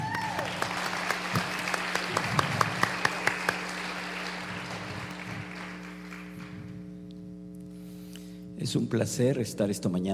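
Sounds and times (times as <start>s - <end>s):
round of applause: 0.0s - 6.8s
speech: 8.6s - 10.1s.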